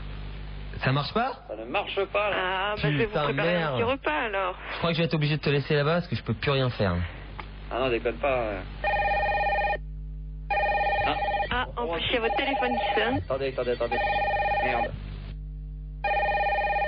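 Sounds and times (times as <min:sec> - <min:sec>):
speech: 0:00.8 - 0:09.0, 0:11.9 - 0:15.1
telephone ringing: 0:08.8 - 0:09.8, 0:10.5 - 0:15.0, 0:16.0 - 0:16.8.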